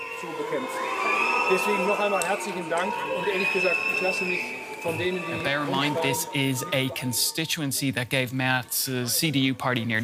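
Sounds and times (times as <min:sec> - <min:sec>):
crowd booing a politician: 0:00.0 - 0:07.7
speech: 0:00.2 - 0:10.0.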